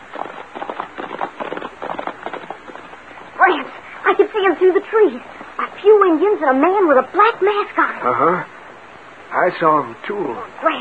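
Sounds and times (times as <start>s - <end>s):
horses approaching: 0.0s - 5.7s
speech: 4.1s - 8.5s, 9.3s - 10.7s.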